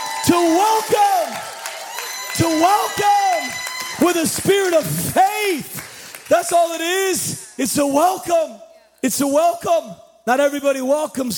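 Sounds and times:
church congregation shouting praise to God: 0.0 - 8.6
speech: 2.4 - 11.3.

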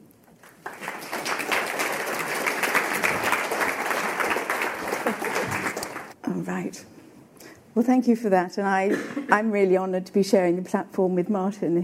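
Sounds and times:
audience applause: 0.4 - 6.2
speech: 6.4 - 7.0, 7.8 - 11.8.

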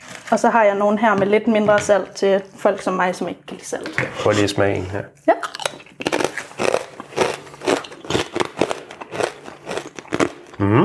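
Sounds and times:
speech: 0.3 - 5.4
biting into crisp lightly salted potato chips: 5.4 - 10.6.

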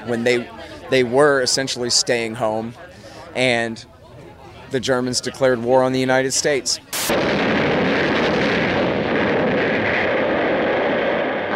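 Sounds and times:
speech: 0.0 - 3.9, 4.7 - 7.5
torpedo explosions striking a submarine: 7.0 - 11.5.

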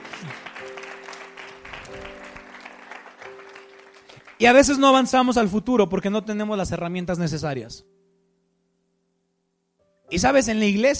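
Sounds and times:
audience applause: 0.0 - 4.6
speech: 4.4 - 7.9, 10.1 - 10.9.

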